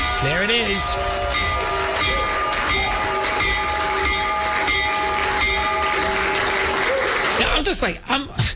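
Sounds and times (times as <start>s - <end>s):
bell ringing: 0.0s - 6.8s
speech: 0.2s - 2.2s, 7.6s - 8.5s.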